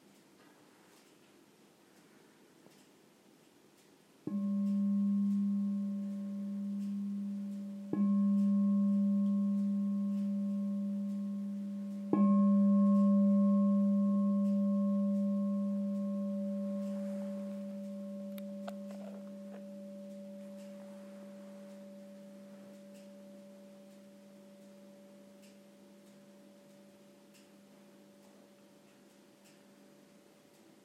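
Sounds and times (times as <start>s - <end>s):
meditation bell ringing: 4.2s - 28.8s.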